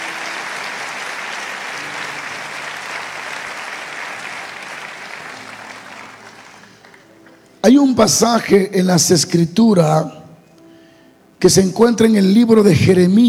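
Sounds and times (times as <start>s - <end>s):
audience applause: 0.0s - 7.1s
speech: 7.7s - 10.2s, 11.4s - 13.2s.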